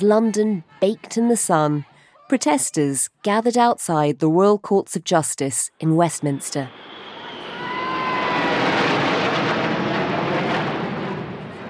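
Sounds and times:
speech: 0.0 - 7.0
faint whining tones: 6.7 - 8.5
aerobatic display jets flying overhead: 6.7 - 11.6.

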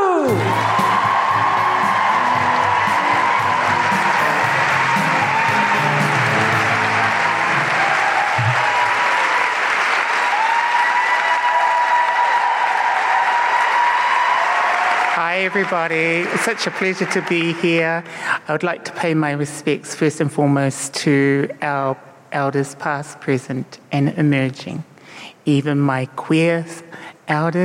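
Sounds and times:
live show audience shouting: 0.0 - 15.1
speech: 0.3 - 0.8, 15.5 - 27.6
live show audience clapping in Melbourne: 0.3 - 18.1.

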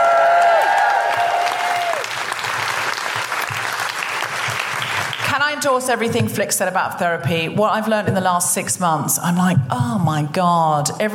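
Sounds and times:
audience whooping: 0.0 - 4.1
audience applause welcoming a stand-up comedian: 0.0 - 5.4
speech: 5.6 - 11.1.

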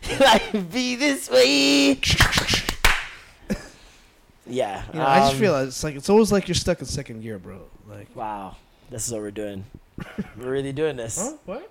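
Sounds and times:
speech: 0.2 - 2.6, 4.5 - 11.6
hand claps: 2.0 - 3.3.

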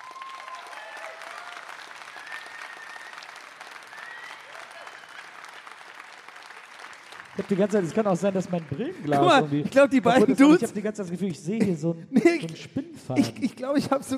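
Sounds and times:
audience applause: 0.0 - 10.6
speech: 7.4 - 14.1.

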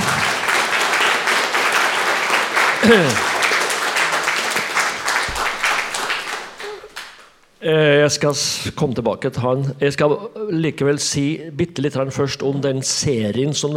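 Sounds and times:
audience applauding: 0.0 - 7.4
speech: 2.8 - 3.3, 7.6 - 13.7.

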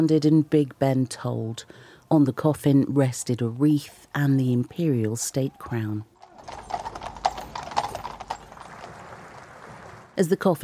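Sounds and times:
speech: 0.0 - 6.7, 10.2 - 10.6
hooves of horses drawing a gun carriage: 5.5 - 10.2.

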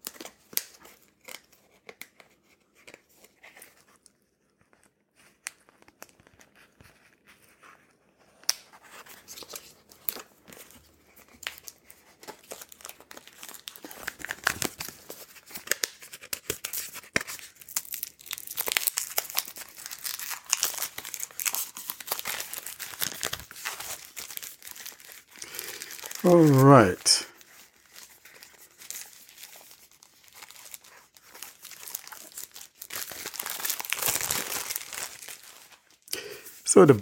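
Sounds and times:
plastic wrapping being torn off a package: 8.5 - 36.1
speech: 26.3 - 27.2, 36.8 - 37.0.

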